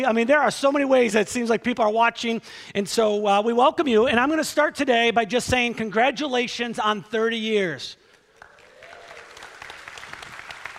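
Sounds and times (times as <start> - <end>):
speech: 0.0 - 8.0
smattering of audience applause: 8.4 - 10.7.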